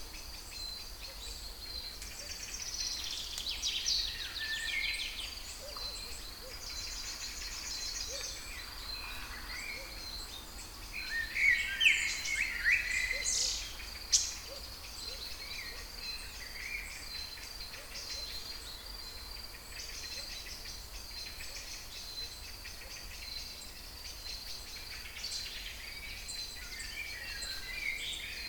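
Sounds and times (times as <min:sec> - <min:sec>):
songbirds twittering in Kouri Forest, Thessaloniki, Greece: 0:00.0 - 0:28.4.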